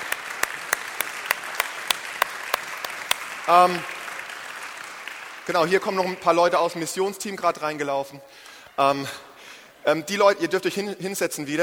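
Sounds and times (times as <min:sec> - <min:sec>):
audience applause: 0:00.0 - 0:06.0
speech: 0:03.5 - 0:04.0, 0:05.5 - 0:11.6.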